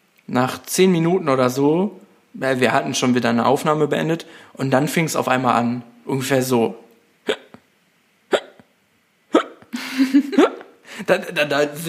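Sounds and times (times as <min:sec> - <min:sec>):
speech: 0:00.3 - 0:07.4, 0:11.1 - 0:11.8
person hiccuping forcefully: 0:07.2 - 0:07.7, 0:08.3 - 0:09.8
short voiced sound: 0:07.3 - 0:07.6, 0:08.3 - 0:08.7, 0:09.3 - 0:09.7
laughter: 0:09.7 - 0:10.7.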